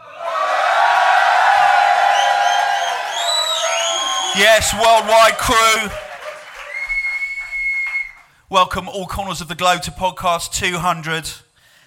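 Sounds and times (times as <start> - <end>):
live audience cheering and whooping at the Sylvan Arms in Forest Hill: 0.0 - 8.2
speech: 4.4 - 6.1, 8.5 - 11.4.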